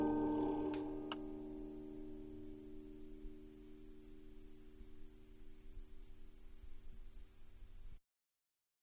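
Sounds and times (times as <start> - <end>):
toy music box tune: 0.0 - 1.8.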